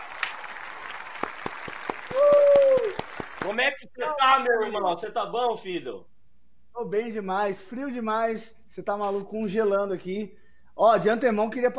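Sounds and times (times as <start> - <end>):
audience applause: 0.0 - 3.6
speech: 3.5 - 6.1, 6.8 - 11.7.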